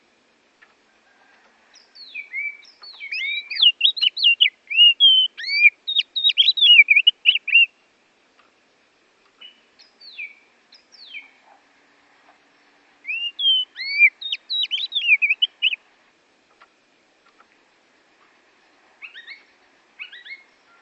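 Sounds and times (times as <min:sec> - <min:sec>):
Oriental magpie-robin singing: 0:01.8 - 0:07.7, 0:09.4 - 0:11.5, 0:13.0 - 0:15.8, 0:19.0 - 0:20.8.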